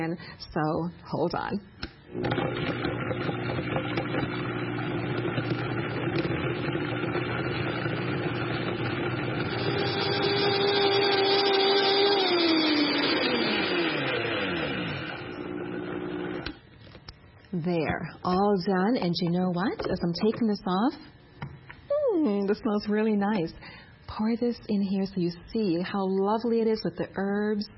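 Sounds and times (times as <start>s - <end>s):
speech: 0.0s - 7.2s, 17.6s - 21.1s, 22.2s - 27.7s
Vitamix blender motor running: 2.1s - 16.6s.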